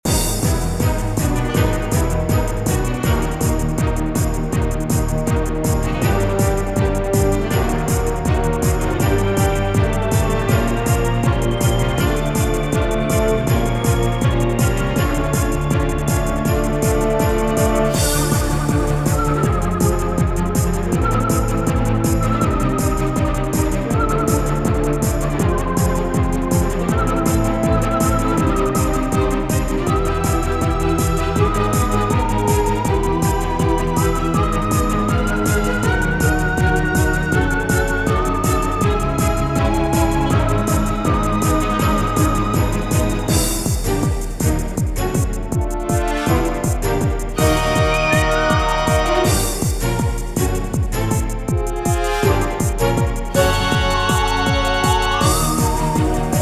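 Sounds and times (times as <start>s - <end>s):
apocalypse video game background music loop: 0.0s - 56.4s.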